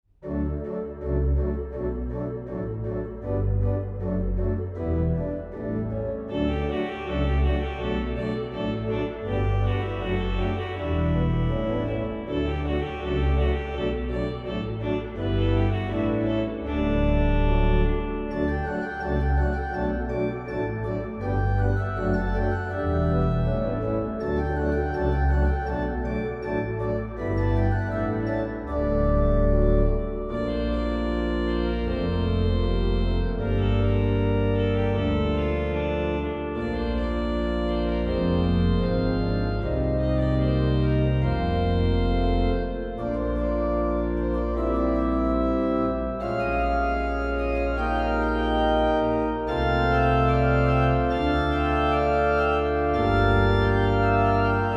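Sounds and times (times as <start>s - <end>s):
organ music: 0.2s - 54.7s.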